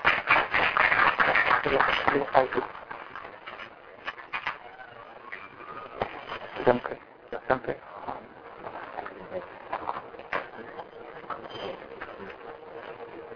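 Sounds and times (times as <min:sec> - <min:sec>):
audience applause welcoming a speaker: 0:00.0 - 0:03.3
speech: 0:01.6 - 0:02.8, 0:06.6 - 0:08.2, 0:09.3 - 0:09.6.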